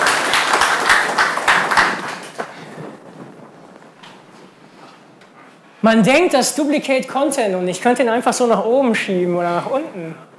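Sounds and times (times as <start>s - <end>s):
audience applause: 0.0s - 2.9s
speech: 5.8s - 10.3s.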